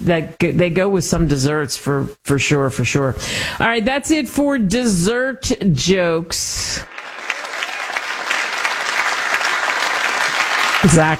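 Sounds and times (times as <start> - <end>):
speech: 0.0 - 6.9, 10.8 - 11.1
applause: 6.9 - 11.1.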